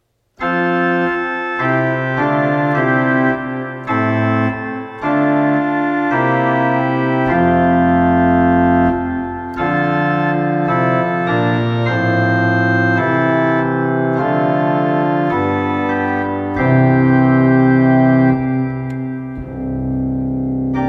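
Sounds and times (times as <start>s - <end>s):
prelude: 0.4s - 20.8s.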